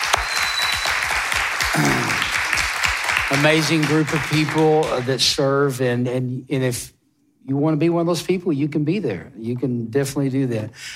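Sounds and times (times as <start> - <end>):
audience applause for volunteers: 0.0 - 5.2
speech: 3.3 - 10.9.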